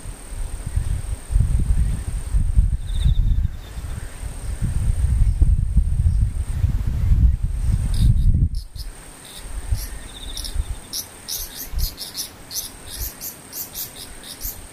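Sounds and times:
insects whining: 0:00.0 - 0:14.7.

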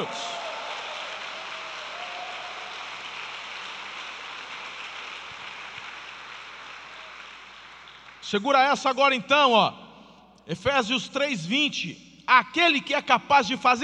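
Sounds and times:
audience applause: 0:00.0 - 0:08.3
speech: 0:08.2 - 0:09.8, 0:10.4 - 0:13.8.

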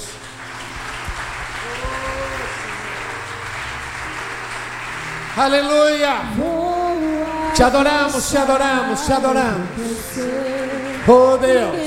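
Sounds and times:
audience applause: 0:00.0 - 0:11.8
speech: 0:05.4 - 0:06.6, 0:07.6 - 0:11.8.

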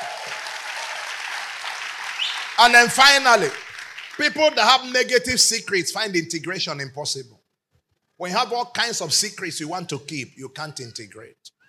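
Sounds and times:
congregation clapping at a church service: 0:00.0 - 0:05.6
speech: 0:02.6 - 0:03.6, 0:04.2 - 0:07.4, 0:08.2 - 0:11.6.

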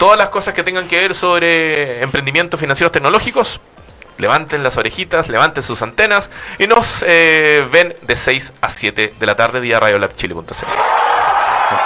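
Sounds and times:
speech: 0:00.0 - 0:11.0
applause: 0:10.7 - 0:11.8.

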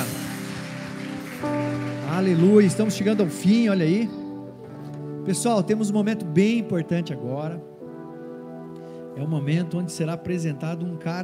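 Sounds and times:
crowd clapping: 0:00.0 - 0:03.7
speech: 0:02.2 - 0:04.2, 0:05.3 - 0:07.7, 0:09.2 - 0:11.2.

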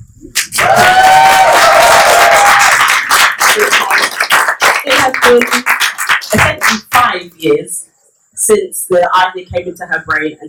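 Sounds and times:
round of applause: 0:00.4 - 0:07.1
speech: 0:08.5 - 0:10.4.

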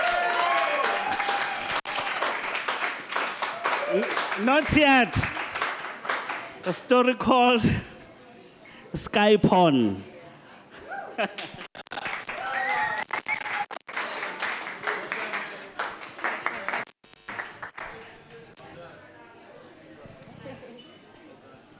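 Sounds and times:
audience applause: 0:00.0 - 0:06.5, 0:11.4 - 0:17.8
speech: 0:03.9 - 0:05.4, 0:06.6 - 0:07.9, 0:08.9 - 0:10.1.

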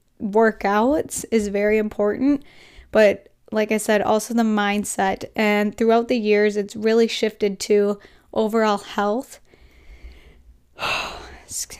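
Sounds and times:
speech: 0:00.2 - 0:09.4, 0:10.8 - 0:11.7
deep breath: 0:02.4 - 0:02.9, 0:09.5 - 0:11.5.

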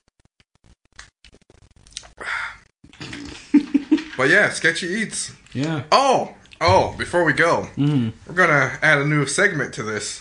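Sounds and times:
person sipping and swigging Schweppes soda: 0:01.8 - 0:03.5
speech: 0:04.2 - 0:10.1.

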